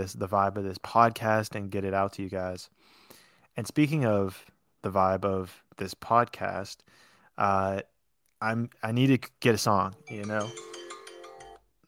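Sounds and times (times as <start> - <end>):
speech: 0.0 - 3.0, 3.6 - 10.8
phone alarm ringing: 10.0 - 11.6.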